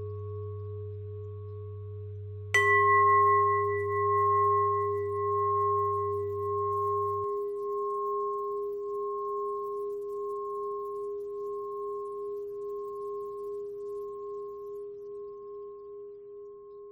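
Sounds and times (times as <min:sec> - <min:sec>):
bell twist: 0:02.6 - 0:13.6.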